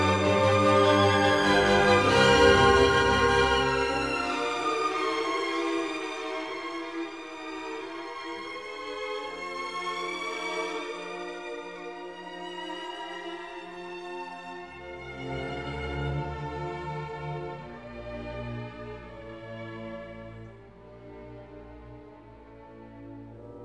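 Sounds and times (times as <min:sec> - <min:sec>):
piano concerto in B flat: 0:00.0 - 0:06.3.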